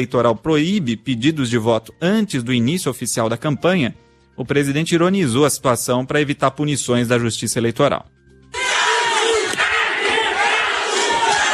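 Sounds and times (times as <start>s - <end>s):
speech: 0.0s - 8.2s
crowd shouting a candidate's name: 8.6s - 11.5s.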